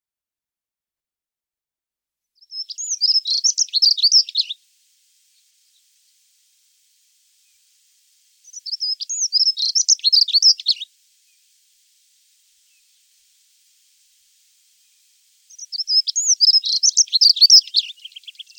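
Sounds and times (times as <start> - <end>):
bird singing high rapid twittering phrases: 2.4 - 4.6, 7.3 - 18.5.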